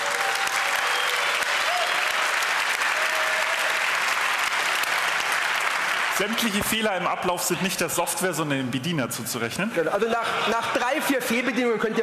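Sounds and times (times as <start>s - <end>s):
audience clapping: 0.0s - 7.5s
speech: 6.2s - 12.0s.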